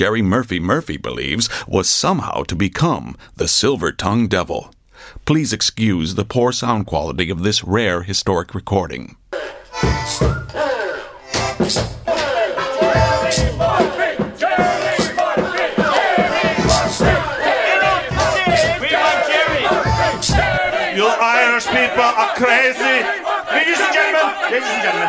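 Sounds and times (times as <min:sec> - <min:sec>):
speech: 0:00.0 - 0:10.8, 0:11.6 - 0:12.0, 0:21.0 - 0:25.0
crowd cheering at live poetry performance: 0:09.4 - 0:25.0
sharp thumping hits: 0:11.3 - 0:20.9.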